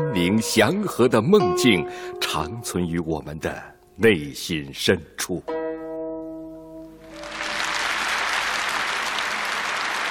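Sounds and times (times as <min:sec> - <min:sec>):
speech: 0:00.2 - 0:05.6
concert hall audience applause: 0:07.0 - 0:10.0.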